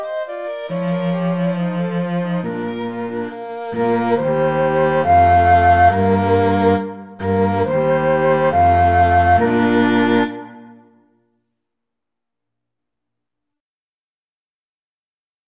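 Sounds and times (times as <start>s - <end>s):
cello: 0.0s - 11.0s
flute: 0.0s - 11.0s
violin: 0.0s - 11.0s.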